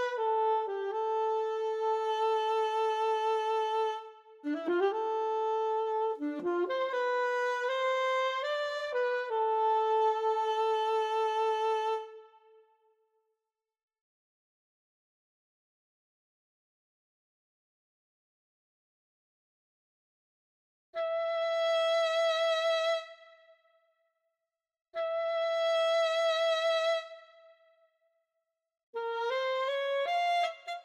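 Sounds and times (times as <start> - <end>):
alto saxophone: 0.0 - 12.6, 21.0 - 23.5, 25.0 - 27.6, 29.0 - 30.8.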